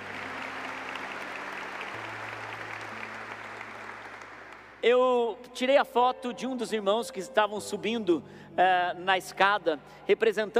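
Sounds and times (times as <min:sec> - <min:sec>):
audience applauding: 0:00.0 - 0:04.8
speech: 0:04.8 - 0:10.5.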